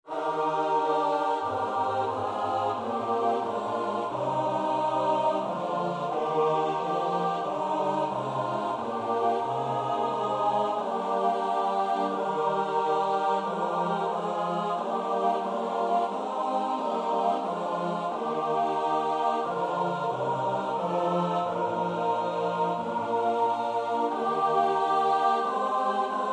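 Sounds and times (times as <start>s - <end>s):
soprano alto tenor bass choir: 0.0s - 26.3s.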